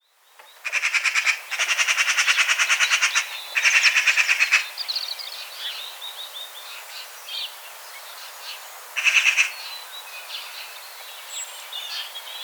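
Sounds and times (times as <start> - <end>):
Eurasian magpie chattering, Pica pica: 0.6 - 4.7, 9.0 - 9.5.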